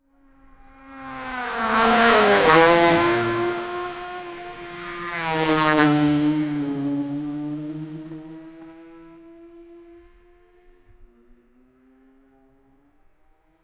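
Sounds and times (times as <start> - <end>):
SUV cars racing: 0.4 - 12.2.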